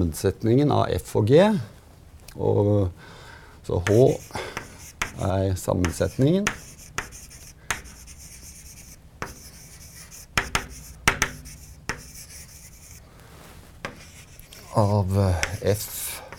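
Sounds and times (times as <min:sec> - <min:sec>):
speech: 0:00.0 - 0:01.8, 0:02.4 - 0:04.6, 0:05.2 - 0:06.6, 0:14.8 - 0:16.0
writing on a board: 0:03.8 - 0:13.0, 0:13.8 - 0:16.3.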